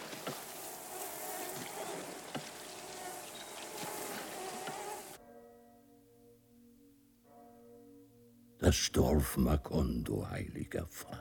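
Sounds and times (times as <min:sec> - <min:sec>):
mosquitoes buzzing: 0:00.0 - 0:05.2
speech: 0:08.6 - 0:11.1.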